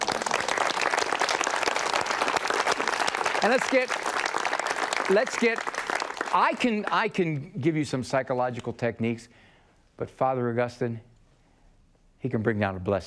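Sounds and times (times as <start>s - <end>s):
audience applause: 0.0s - 7.1s
speech: 3.4s - 4.1s, 5.1s - 5.7s, 6.3s - 11.1s, 12.2s - 13.0s.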